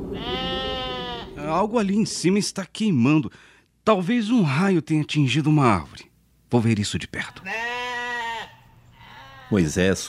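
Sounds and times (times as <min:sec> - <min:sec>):
sheep bleating: 0:00.1 - 0:01.5, 0:07.3 - 0:10.0
speech: 0:01.5 - 0:07.7, 0:09.5 - 0:10.0.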